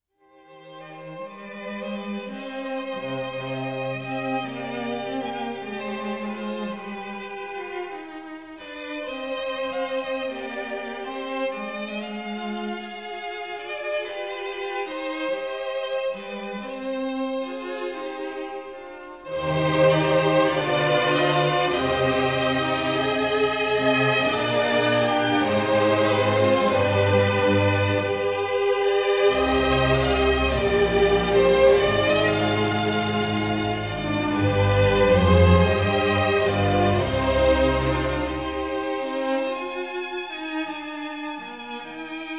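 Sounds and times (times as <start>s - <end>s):
concerto grosso in C minor siciliana: 0.2s - 42.3s.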